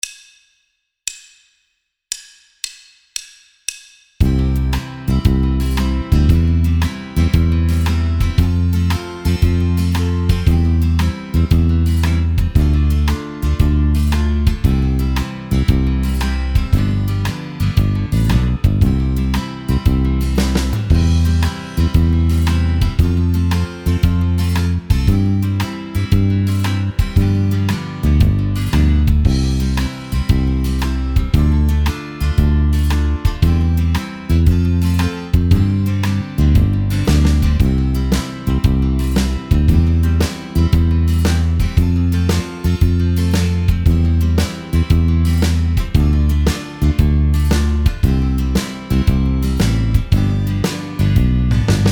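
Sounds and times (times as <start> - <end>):
instrumental song accompaniment: 4.2 - 51.9.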